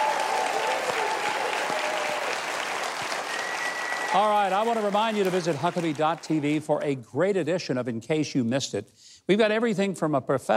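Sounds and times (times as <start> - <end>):
audience applause: 0.0 - 6.8
speech: 4.1 - 10.5.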